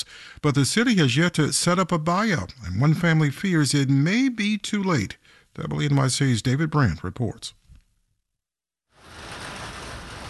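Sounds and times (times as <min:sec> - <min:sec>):
speech: 0:00.1 - 0:07.6
rain pelting a sidewalk along a street in Hollis, Queens: 0:08.9 - 0:10.2.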